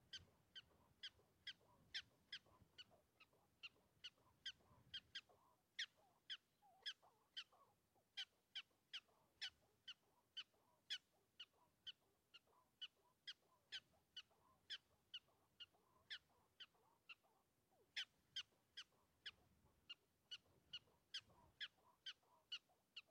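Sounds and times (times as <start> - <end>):
prairie dog chirps: 0.0 - 23.0.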